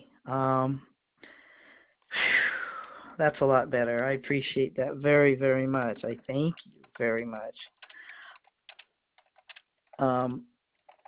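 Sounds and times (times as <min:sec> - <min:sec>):
speech: 0:00.3 - 0:00.9, 0:03.2 - 0:07.8, 0:10.0 - 0:10.5
typing on a computer keyboard: 0:07.7 - 0:10.0, 0:10.8 - 0:11.0.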